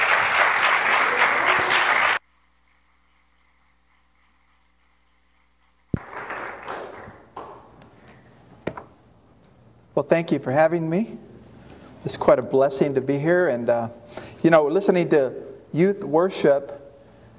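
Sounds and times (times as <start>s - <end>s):
church audience applauding a guest speaker: 0.0s - 2.2s, 6.0s - 7.7s
speech: 10.0s - 11.3s, 12.0s - 16.8s.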